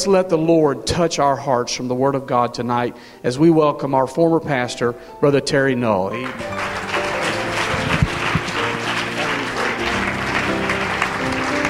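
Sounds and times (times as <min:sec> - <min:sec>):
speech: 0:00.0 - 0:06.8
church congregation clapping loudly in praise during a church service: 0:06.2 - 0:11.6.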